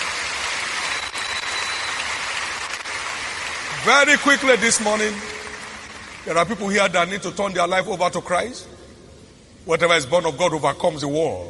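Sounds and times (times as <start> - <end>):
audience clapping: 0.0 - 7.0
speech: 3.8 - 5.4, 6.2 - 8.8, 9.6 - 11.4.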